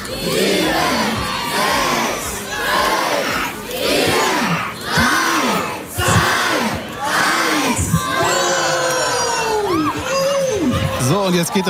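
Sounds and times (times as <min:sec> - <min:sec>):
students shouting and cheering in a Gymnasium schoolyard at a balloon launch: 0:00.0 - 0:11.6
high whoops and yells of young voices: 0:07.8 - 0:11.1
speech: 0:11.5 - 0:11.6.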